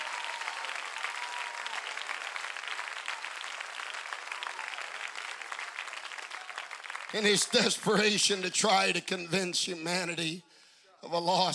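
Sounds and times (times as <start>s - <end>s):
audience clapping hands: 0.0s - 8.5s
speech: 7.1s - 11.5s.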